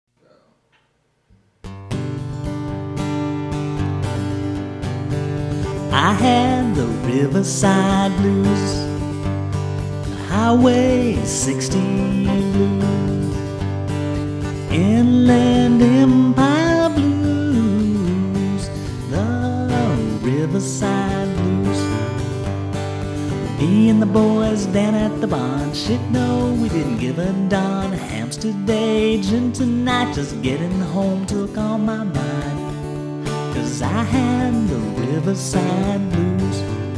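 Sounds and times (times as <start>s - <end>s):
blues music: 1.6s - 36.9s.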